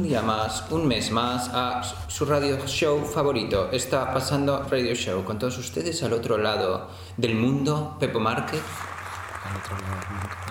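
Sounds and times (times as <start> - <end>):
speech: 0.0 - 10.4
applause: 8.5 - 10.4.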